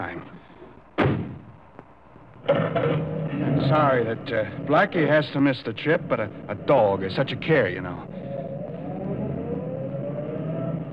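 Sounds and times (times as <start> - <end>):
car approaching up a driveway: 2.6 - 10.9
speech: 3.7 - 8.2.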